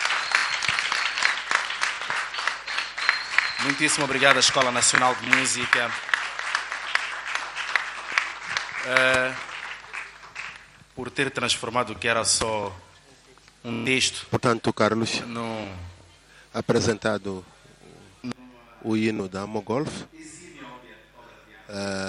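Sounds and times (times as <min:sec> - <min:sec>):
applause: 0:00.0 - 0:10.8
speech: 0:03.6 - 0:06.1, 0:08.8 - 0:09.5, 0:11.0 - 0:12.9, 0:13.6 - 0:17.5, 0:18.2 - 0:20.4, 0:21.7 - 0:22.0.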